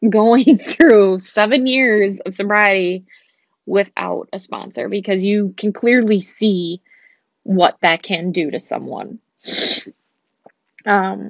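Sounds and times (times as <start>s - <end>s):
speech: 0.0s - 10.0s, 10.8s - 11.2s
person sniffing: 9.5s - 9.9s.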